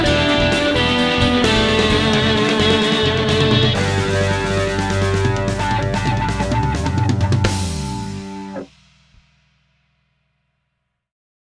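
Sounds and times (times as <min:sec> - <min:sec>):
guitar song played through a multi-effects pedal: 0:00.0 - 0:08.7.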